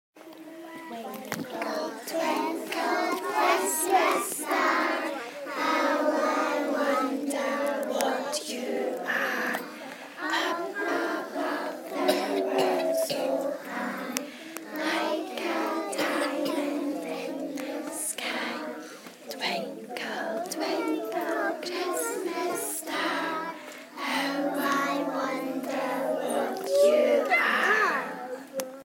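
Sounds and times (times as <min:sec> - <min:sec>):
Christmas song: 0:00.3 - 0:28.8.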